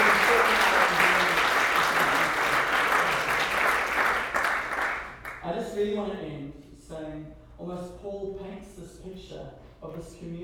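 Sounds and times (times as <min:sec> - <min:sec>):
audience clapping at a Christian gathering: 0:00.0 - 0:05.4.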